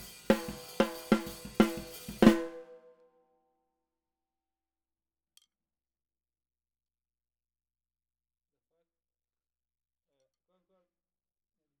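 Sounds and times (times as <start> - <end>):
snare drum: 0.0 - 2.9.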